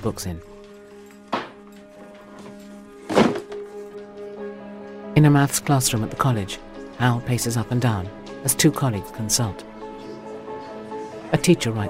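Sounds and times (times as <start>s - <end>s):
speech: 0.0s - 0.5s, 5.2s - 9.7s, 11.3s - 11.8s
cardboard box placed onto a chair: 1.3s - 1.6s, 2.4s - 3.8s.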